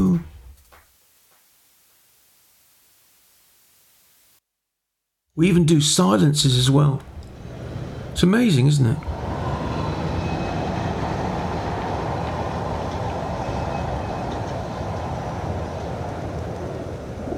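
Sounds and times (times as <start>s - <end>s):
speech: 5.4s - 7.2s, 8.2s - 9.2s
traffic noise: 6.0s - 17.3s.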